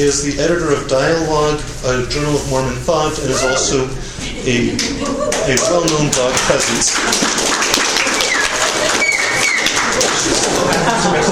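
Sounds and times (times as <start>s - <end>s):
speech: 0.0s - 7.5s
laughter: 3.3s - 7.3s, 8.0s - 11.3s
applause: 5.3s - 11.3s.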